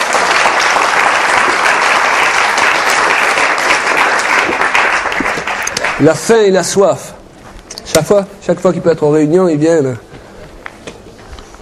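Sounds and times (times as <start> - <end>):
audience applause: 0.0 - 6.5
speech: 6.0 - 7.2, 7.9 - 10.1.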